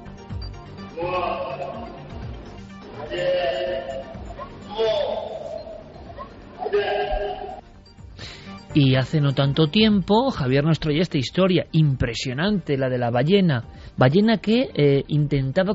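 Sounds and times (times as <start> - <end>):
elephant calling: 0.9 - 7.6
speech: 1.0 - 2.0, 3.0 - 3.4, 8.8 - 15.7.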